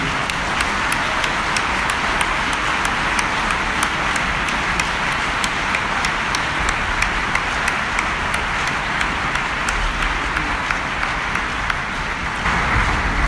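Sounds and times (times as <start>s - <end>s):
audience applause: 0.0s - 13.2s.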